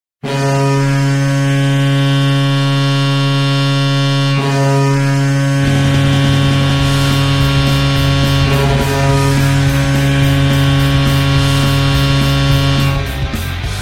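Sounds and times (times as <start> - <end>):
goal horn: 0.2 - 13.7.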